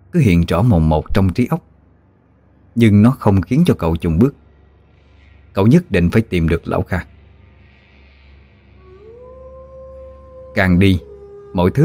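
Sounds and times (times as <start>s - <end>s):
speech: 0.1s - 1.7s, 2.8s - 4.4s, 5.6s - 7.1s, 10.6s - 11.8s
wolf howling: 8.7s - 11.8s.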